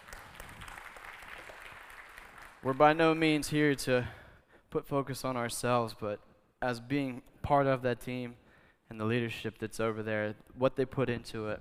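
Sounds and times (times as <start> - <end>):
audience applauding the praise team: 0.0 - 3.0
speech: 2.6 - 11.5.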